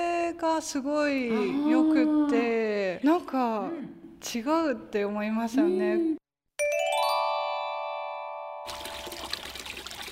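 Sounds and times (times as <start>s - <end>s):
speech: 0.4s - 6.2s
clear bell-like tone: 6.6s - 8.7s
famous spring water flowing out abundantly: 8.7s - 10.1s.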